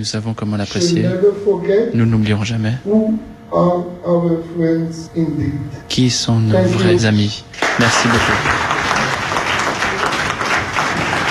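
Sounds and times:
speech: 0.0 - 8.8
audience standing applauding: 7.5 - 11.3.

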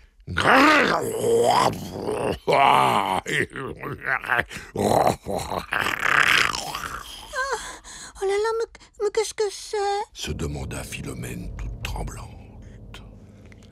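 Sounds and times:
man imitating a monstrous ogre growl: 0.3 - 7.4
speech: 0.4 - 6.6, 8.5 - 12.3.

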